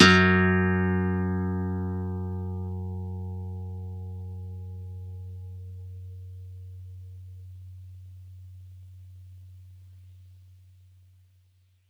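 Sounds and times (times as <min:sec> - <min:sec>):
nylon guitar playing F sharp two: 0:00.0 - 0:05.8.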